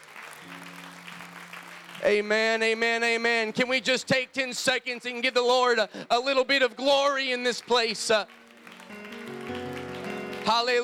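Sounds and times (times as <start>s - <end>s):
audience hand clapping: 0.0s - 3.8s, 6.9s - 10.8s
speech: 2.0s - 8.4s, 10.5s - 10.8s.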